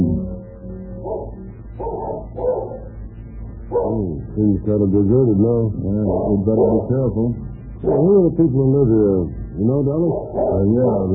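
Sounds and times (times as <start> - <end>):
fierce barking of a pair of dogs: 1.0 - 3.0, 3.7 - 4.0, 6.1 - 6.9, 7.8 - 8.2, 10.0 - 11.1
speech: 4.4 - 11.1.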